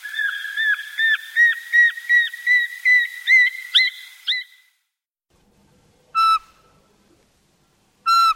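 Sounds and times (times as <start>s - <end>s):
Eurasian pygmy owl piping whistles: 0.0s - 4.7s, 6.2s - 6.5s, 8.1s - 8.3s.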